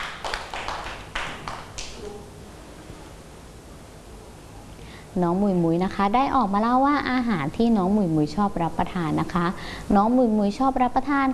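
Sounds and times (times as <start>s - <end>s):
children clapping hands: 0.0s - 2.0s
faint murmur of the room: 0.0s - 11.3s
speech: 5.2s - 11.3s.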